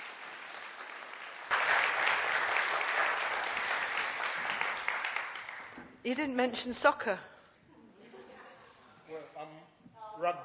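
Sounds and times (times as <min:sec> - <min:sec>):
audience applause: 0:00.0 - 0:05.8
speech: 0:06.0 - 0:07.3, 0:10.2 - 0:10.4.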